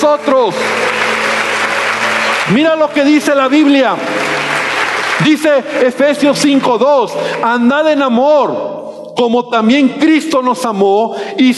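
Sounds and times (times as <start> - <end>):
speech: 0.0 - 1.0, 2.4 - 4.2, 5.2 - 11.5
audience applauding: 0.0 - 7.6.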